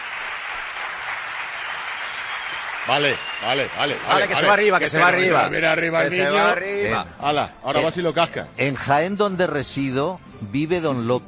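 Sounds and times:
audience applause: 0.0 - 5.4
speech: 2.9 - 11.2.

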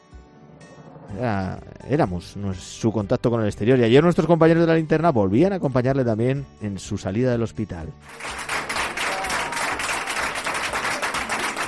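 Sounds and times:
speech: 0.9 - 8.5
applause: 8.0 - 11.6.

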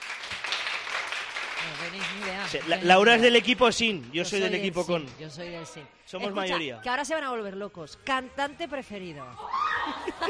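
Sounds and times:
audience clapping: 0.0 - 4.8
speech: 1.6 - 10.2
laughter: 9.4 - 10.2.

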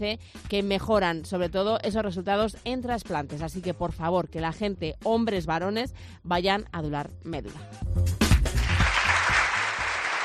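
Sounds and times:
speech: 0.0 - 8.4
audience applause: 8.5 - 10.2.

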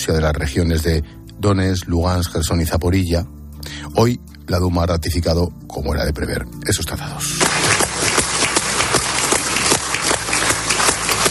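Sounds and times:
speech: 0.0 - 7.8
parliament deputies applauding: 7.4 - 11.2.

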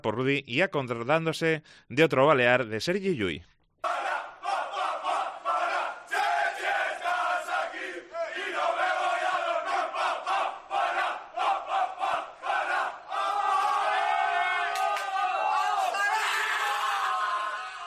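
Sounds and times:
speech: 0.0 - 3.5
basketball team battle cry: 3.8 - 17.8.

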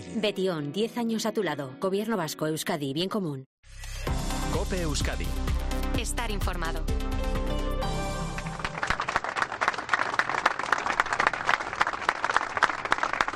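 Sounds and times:
speech: 0.2 - 4.0, 4.6 - 7.2
emotional applause at a memorial tribute: 8.2 - 13.3.

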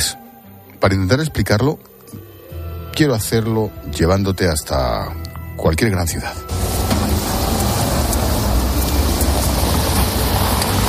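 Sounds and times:
speech: 0.8 - 2.2, 3.0 - 6.7
busy city street traffic: 6.5 - 10.8.

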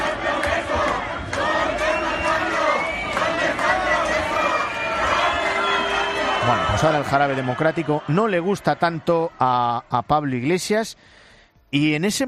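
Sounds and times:
crowd of activists shouting protest slogans: 0.0 - 9.4
speech: 6.8 - 12.2.

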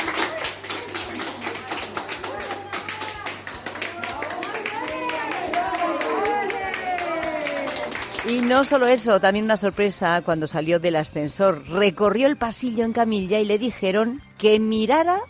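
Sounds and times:
group applauding for a patient: 0.0 - 9.3
excited voices and cheers: 0.1 - 8.1
speech: 8.3 - 15.2.

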